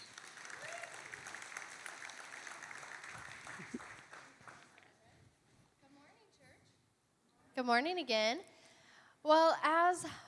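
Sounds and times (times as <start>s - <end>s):
round of applause: 0.0s - 4.9s
speech: 7.6s - 8.5s, 9.2s - 10.2s.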